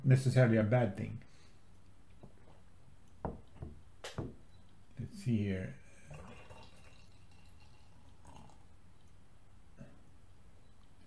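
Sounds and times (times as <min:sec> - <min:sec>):
speech: 0:00.1 - 0:01.3, 0:05.2 - 0:05.8
last of a beer pouring into a glass: 0:05.9 - 0:08.7.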